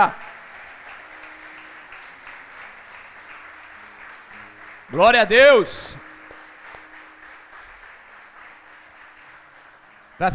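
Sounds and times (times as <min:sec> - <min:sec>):
speech: 0:00.0 - 0:00.2, 0:04.9 - 0:06.0
audience applause: 0:00.0 - 0:10.3.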